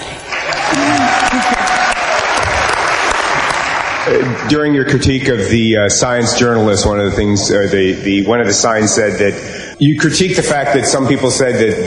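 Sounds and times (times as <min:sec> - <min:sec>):
audience applause: 0:00.0 - 0:04.8
speech: 0:04.1 - 0:11.8.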